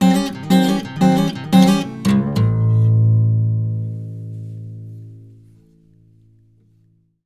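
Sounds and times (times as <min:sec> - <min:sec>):
baritone blues guitar lick in A: 0:00.0 - 0:05.4.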